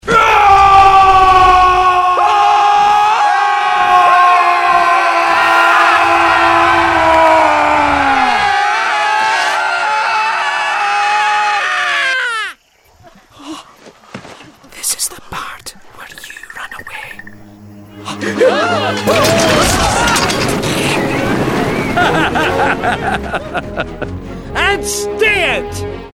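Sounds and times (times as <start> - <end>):
scary scream: 0.0 - 12.6, 18.0 - 23.0
laughter: 18.0 - 20.0, 21.0 - 24.2.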